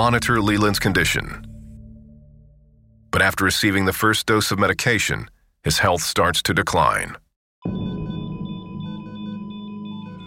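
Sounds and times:
speech: 0.0 - 1.5, 3.1 - 7.9
hospital monitor machine beeping: 7.7 - 10.2.

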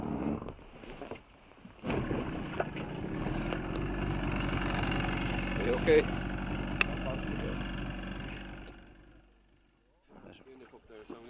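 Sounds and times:
boat engine starting and running: 1.8 - 9.4
speech: 5.7 - 6.2.

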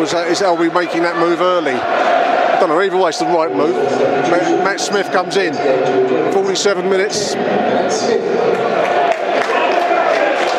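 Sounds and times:
speech: 0.0 - 9.0
stadium crowd clapping and applauding: 8.4 - 10.5.

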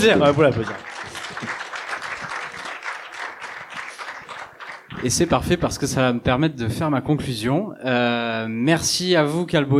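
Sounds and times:
speech: 0.0 - 1.5, 5.0 - 9.7
audience applause: 0.0 - 5.6.

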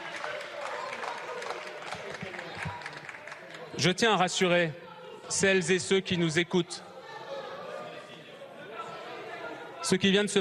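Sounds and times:
audience applauding: 0.0 - 3.7
speech: 3.8 - 6.9, 9.9 - 10.3.

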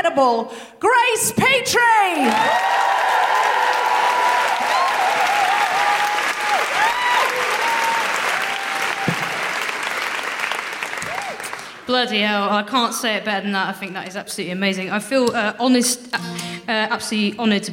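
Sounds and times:
speech: 0.0 - 4.0, 11.9 - 17.7
cheers and whoops: 2.2 - 9.6, 11.0 - 11.6
crowd applauding: 2.2 - 11.9.

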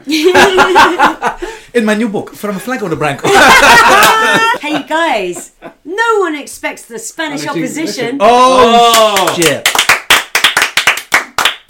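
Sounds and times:
speech: 0.0 - 9.9
laughter: 0.1 - 1.5, 3.2 - 5.9
brisk uneven hand clapping from a few people: 8.8 - 11.6.

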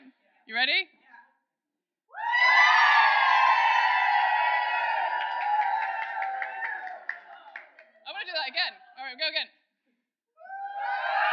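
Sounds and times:
speech: 0.5 - 1.0
crowd cheering and screaming: 2.1 - 7.1, 10.4 - 11.3
scattered claps: 5.2 - 8.3.

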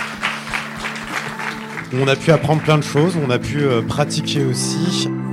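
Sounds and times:
audience applause: 0.0 - 3.8
speech: 1.9 - 5.2.

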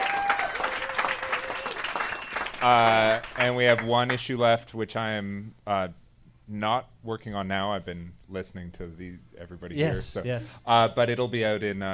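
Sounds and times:
round of applause: 0.0 - 3.9
speech: 2.6 - 11.9.

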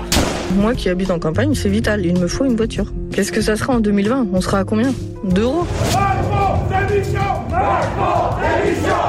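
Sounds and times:
stun grenade blasts during street protest: 0.1 - 0.7
speech: 0.6 - 9.0.

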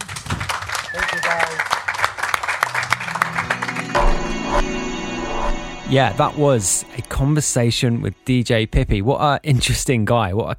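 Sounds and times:
audience applause: 0.0 - 4.6
speech: 5.9 - 10.5.

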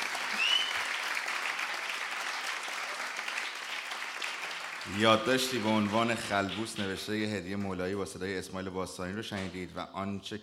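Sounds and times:
audience applause: 0.0 - 7.3
speech: 4.9 - 10.4.

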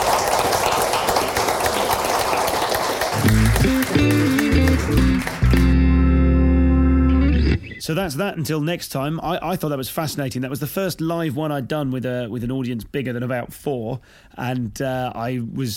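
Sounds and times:
live audience applause at a festival show: 0.0 - 6.1
loud music with sustained tones: 3.2 - 7.8
speech: 7.9 - 15.7.

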